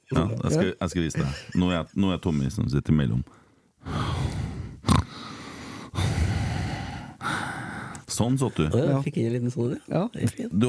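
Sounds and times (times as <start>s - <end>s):
speech: 0.1s - 4.1s, 8.2s - 10.6s
heavy breathing into a microphone: 3.3s - 8.1s.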